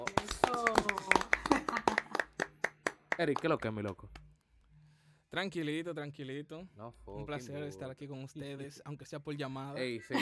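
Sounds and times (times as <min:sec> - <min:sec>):
hands clapping: 0:00.0 - 0:04.4
laughter: 0:01.2 - 0:02.3
speech: 0:03.2 - 0:04.2, 0:05.3 - 0:10.1.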